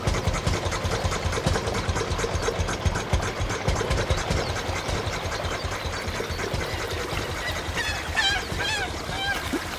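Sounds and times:
small early high-speed motorboat engine chugging on the Neckar river: 0:00.0 - 0:09.7.

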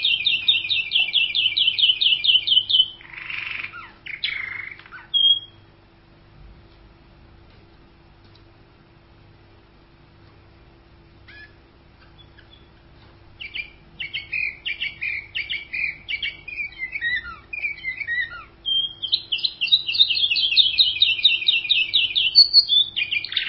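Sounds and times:
canary song with high whistles, buzzy rattles and trills: 0:00.0 - 0:06.0, 0:11.1 - 0:23.4.

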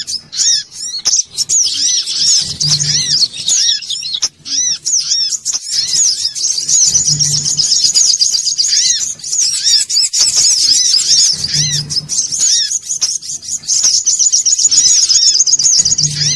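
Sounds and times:
low hum: 0:00.0 - 0:05.2, 0:05.8 - 0:09.4, 0:10.7 - 0:12.8, 0:15.6 - 0:16.3
Spiderhunter twittering song: 0:00.0 - 0:16.3.

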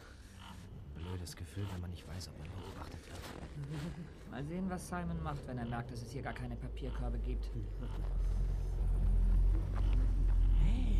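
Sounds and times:
speech: 0:01.2 - 0:08.7
car with tinted windows approaching with deep engine rumble: 0:04.1 - 0:10.9.

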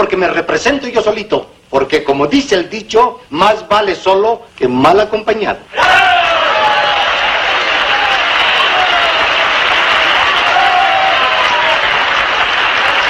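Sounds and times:
speech: 0:00.0 - 0:06.0
audience applause: 0:05.8 - 0:13.0.

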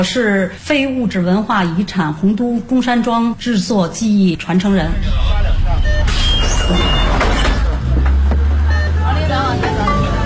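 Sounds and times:
speech: 0:00.0 - 0:07.0
city bus in Beijing pulling away from a stop: 0:00.0 - 0:10.2
passengers chattering: 0:02.5 - 0:10.2.

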